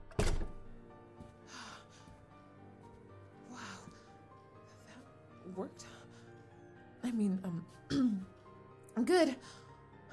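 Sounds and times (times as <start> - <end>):
door shutting: 0.0 - 0.7
speech: 5.5 - 6.0, 7.1 - 8.3, 9.0 - 9.6.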